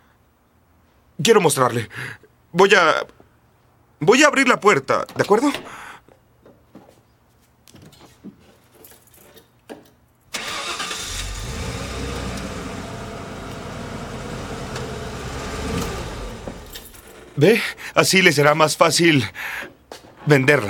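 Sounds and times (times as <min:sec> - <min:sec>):
speech: 0:01.2 - 0:03.2, 0:04.0 - 0:05.8, 0:17.4 - 0:20.6
pickup truck engine starting and idling: 0:10.3 - 0:17.3.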